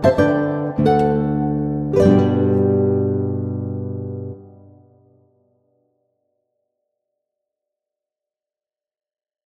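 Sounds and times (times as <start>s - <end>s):
two guitars playing a prelude: 0.0s - 5.2s.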